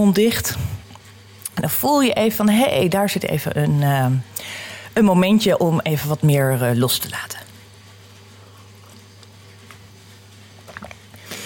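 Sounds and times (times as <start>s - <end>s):
speech: 0.0s - 0.8s, 1.6s - 7.4s
low steady hum: 0.0s - 11.4s
person taking a sip of water: 8.2s - 9.9s, 10.6s - 11.4s.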